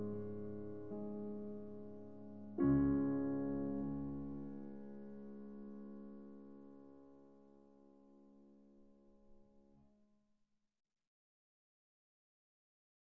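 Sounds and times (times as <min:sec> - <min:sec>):
piano prelude in D-flat major: 0:00.0 - 0:09.8.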